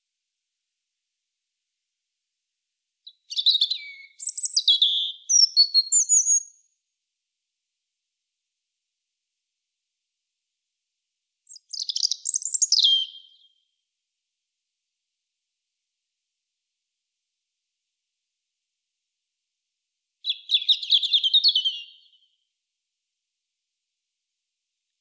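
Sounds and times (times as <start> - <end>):
European robin singing: 3.0 - 6.7, 11.5 - 13.5, 20.2 - 22.2.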